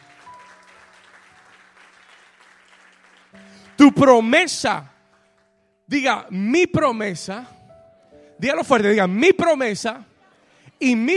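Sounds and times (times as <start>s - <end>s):
audience applause: 0.0s - 3.8s
speech: 3.3s - 4.9s, 5.9s - 7.6s, 8.4s - 10.1s, 10.8s - 11.1s.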